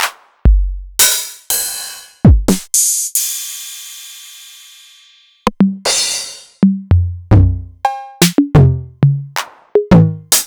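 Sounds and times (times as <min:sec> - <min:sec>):
Novation Drumstation drum machine: 0:00.0 - 0:03.3, 0:05.4 - 0:10.4.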